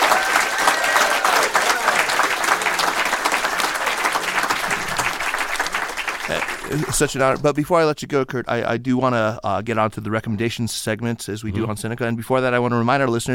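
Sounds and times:
audience applauding a guest: 0.0s - 7.5s
crowd noise: 0.0s - 7.5s
speech: 6.3s - 13.3s.

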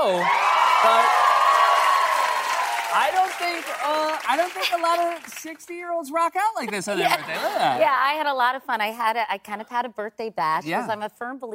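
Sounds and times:
studio audience applauding: 0.0s - 5.8s
speech: 0.1s - 1.2s, 2.9s - 11.5s.

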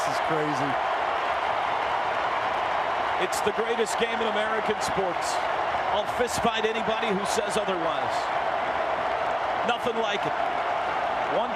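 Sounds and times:
Texas stadium crowd cheering in the north end zone: 0.0s - 11.5s
speech: 0.1s - 0.9s, 3.2s - 8.4s, 9.6s - 10.6s, 11.3s - 11.5s.

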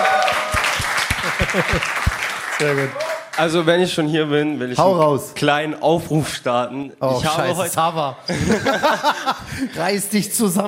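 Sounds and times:
audience applause: 0.0s - 3.4s
laughter: 0.8s - 2.3s, 8.3s - 9.8s
speech: 1.5s - 2.0s, 2.6s - 10.6s.

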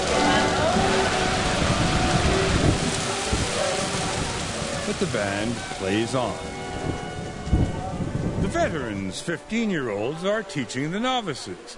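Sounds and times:
tropical downpour rain: 0.0s - 11.7s
speech: 5.0s - 7.0s, 8.6s - 11.7s.

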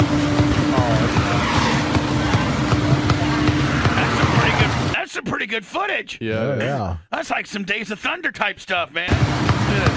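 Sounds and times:
high tire squeal: 0.0s - 5.0s
damaged car wheel rumbling and knocking: 0.2s - 5.0s
speech: 5.6s - 9.9s.

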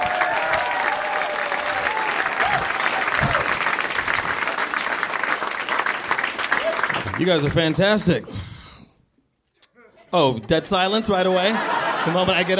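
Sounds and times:
stand-up comedy audience applause: 0.0s - 7.8s
speech: 7.2s - 8.5s, 10.1s - 12.5s
laughter: 9.8s - 12.5s.

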